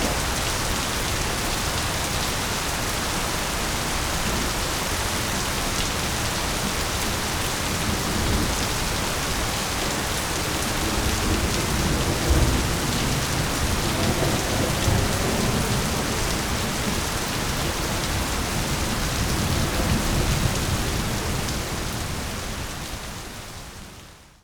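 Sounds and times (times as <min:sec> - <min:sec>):
heavy rain in a thunderstorm: 0:00.0 - 0:24.4
thunder in a thunderstorm: 0:10.8 - 0:21.5.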